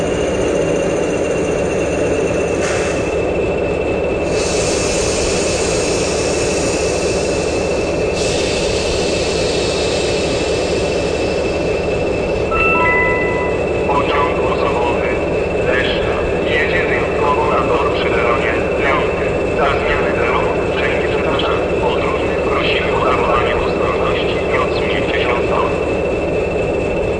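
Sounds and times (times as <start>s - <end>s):
PKP SM42 SP42 diesel locomotive engine: 0.0s - 27.1s.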